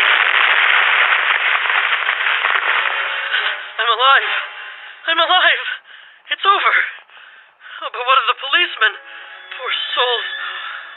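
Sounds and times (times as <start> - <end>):
car crashing and exploding in ravine: 0.0 - 4.6
speech: 4.0 - 7.0, 7.8 - 10.5.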